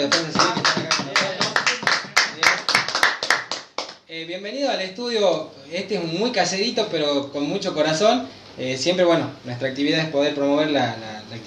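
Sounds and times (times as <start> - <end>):
applause: 0.0 - 4.0
speech: 4.4 - 11.4.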